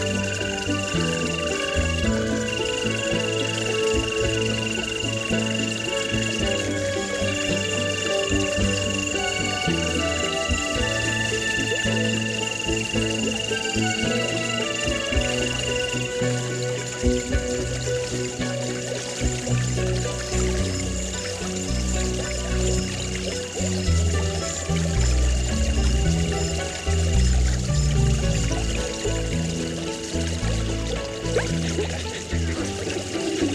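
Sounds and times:
backyard stream rippling: 0.0 - 33.5
music: 0.0 - 33.5.

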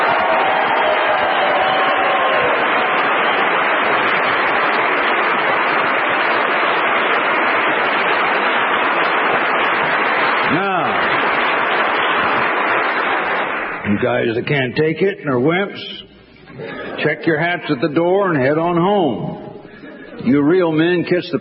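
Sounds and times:
audience booing: 0.0 - 5.9
audience applause: 0.0 - 14.2
speech: 14.0 - 19.4, 20.2 - 21.3.

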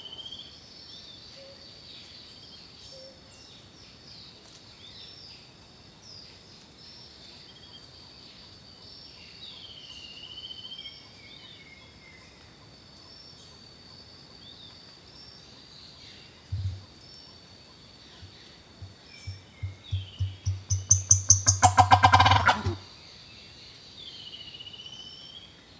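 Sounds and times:
turkey gobbling: 19.3 - 22.8.

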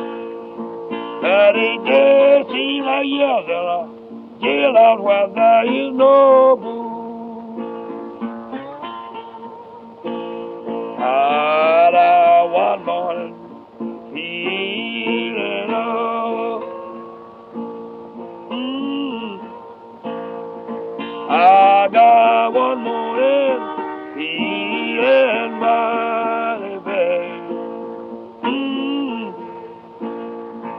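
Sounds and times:
slide guitar playing blues: 0.0 - 30.7.

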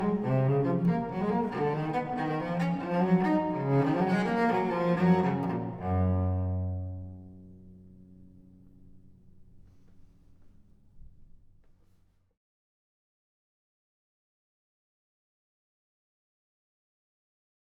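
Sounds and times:
solo cello gigue: 0.0 - 11.8.

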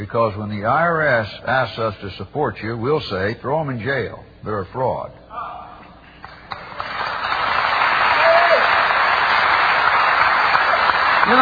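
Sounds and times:
speech: 0.0 - 5.2, 11.3 - 11.4
audience applause: 6.2 - 11.4.

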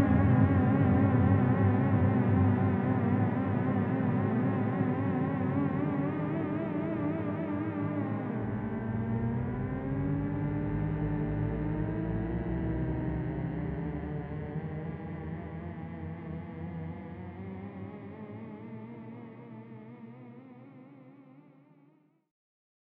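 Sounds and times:
scary theremin sound effects: 0.0 - 15.0.

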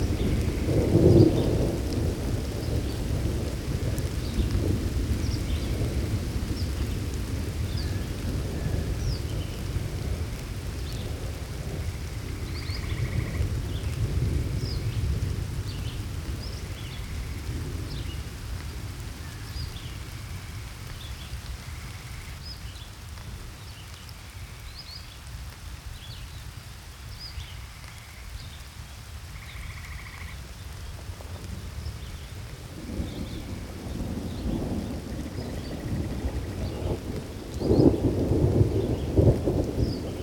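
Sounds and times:
thunderstorm: 0.0 - 22.4, 30.9 - 40.2.

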